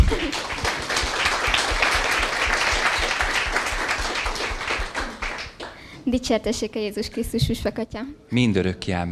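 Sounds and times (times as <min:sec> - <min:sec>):
audience applause: 0:00.0 - 0:05.8
speech: 0:06.1 - 0:09.0.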